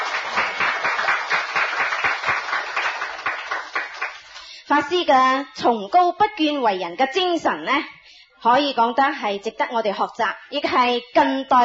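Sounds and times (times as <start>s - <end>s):
crowd applauding: 0.0s - 4.4s
speech: 4.7s - 11.6s.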